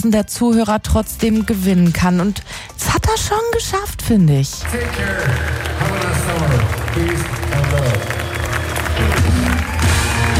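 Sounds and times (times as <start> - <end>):
speech: 0.0 - 8.2
concert audience applause: 4.6 - 10.3
crowd noise: 4.6 - 10.3
cheers: 4.7 - 10.3.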